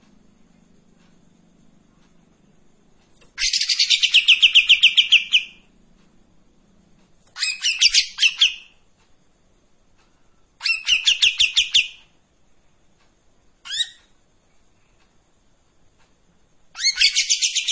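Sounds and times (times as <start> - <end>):
Streak-eared bulbul buzzy chattering song: 3.2 - 5.8, 7.3 - 8.8, 10.6 - 12.2, 16.7 - 17.7.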